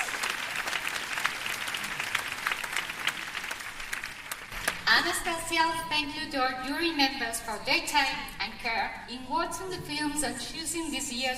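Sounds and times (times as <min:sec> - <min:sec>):
audience applause: 0:00.0 - 0:04.8
speech: 0:05.0 - 0:11.3.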